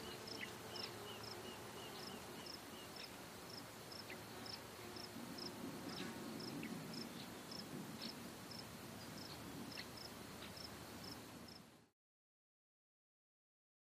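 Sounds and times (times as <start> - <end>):
cicada chirping: 0.0 - 5.5, 6.4 - 11.6.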